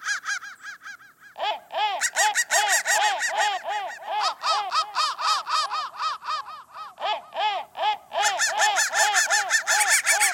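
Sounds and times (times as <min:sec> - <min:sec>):
crows cawing: 0:00.0 - 0:10.3.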